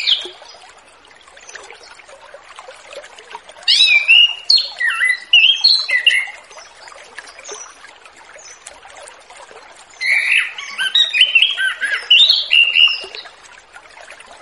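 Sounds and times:
orange-headed thrush song in relaxed open-flowing style: 0:03.7 - 0:06.4, 0:10.0 - 0:13.3.

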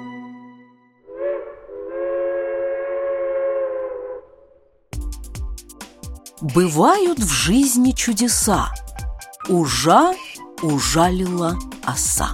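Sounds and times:
train whistle: 0:01.0 - 0:04.3
speech: 0:06.4 - 0:08.9, 0:09.5 - 0:12.3.

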